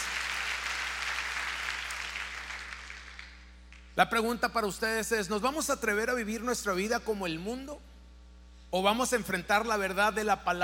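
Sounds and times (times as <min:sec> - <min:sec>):
audience applause: 0:00.0 - 0:03.4
low steady hum: 0:00.0 - 0:10.6
speech: 0:04.0 - 0:07.9, 0:08.7 - 0:10.6.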